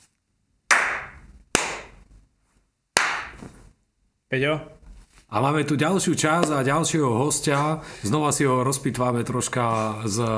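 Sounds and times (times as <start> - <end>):
hand clap: 0.7 - 2.0, 3.0 - 3.4
speech: 4.3 - 10.3.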